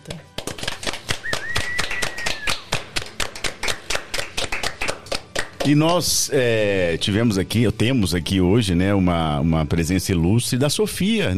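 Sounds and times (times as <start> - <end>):
hand claps from a small group: 0.0 - 6.1
short whistle: 1.2 - 2.6
speech: 5.6 - 11.3.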